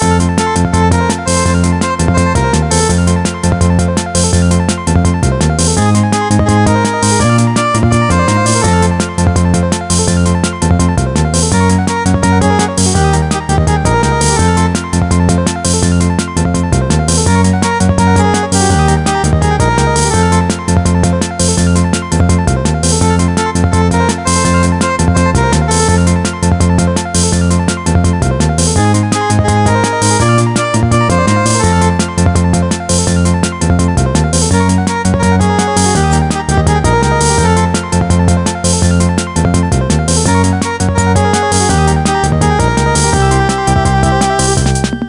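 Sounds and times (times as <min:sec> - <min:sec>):
bonus game tune: 0:00.0 - 0:45.0.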